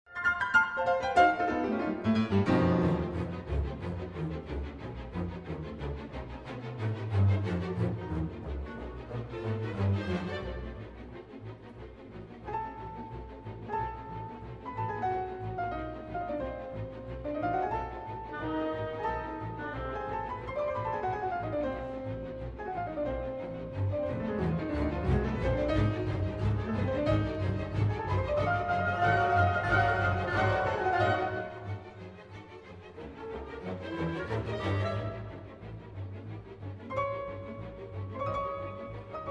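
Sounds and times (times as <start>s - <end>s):
piano: 0.1s - 39.3s.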